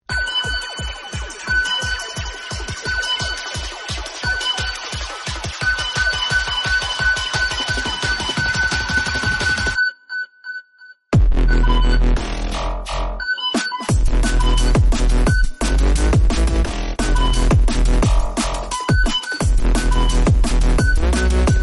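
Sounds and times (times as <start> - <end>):
bass: 0.1 - 9.8, 11.1 - 13.3, 13.9 - 21.6.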